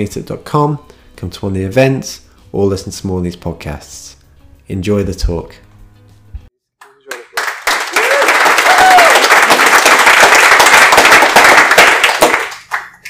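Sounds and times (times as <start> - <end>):
speech: 0.0 - 5.6
audience applause: 6.8 - 13.0.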